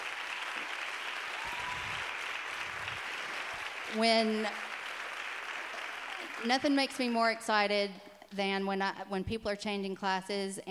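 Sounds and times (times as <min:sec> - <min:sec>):
audience applause: 0:00.0 - 0:07.1
speech: 0:03.9 - 0:04.7, 0:06.4 - 0:10.6.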